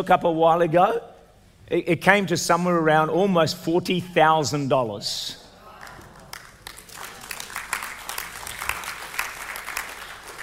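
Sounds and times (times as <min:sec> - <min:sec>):
speech: 0:00.0 - 0:01.1, 0:01.7 - 0:05.4
audience clapping: 0:05.8 - 0:10.4.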